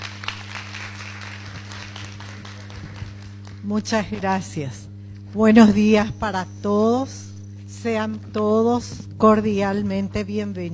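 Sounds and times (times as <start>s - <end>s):
applause welcoming a speaker: 0.0s - 3.8s
speech: 3.6s - 10.7s.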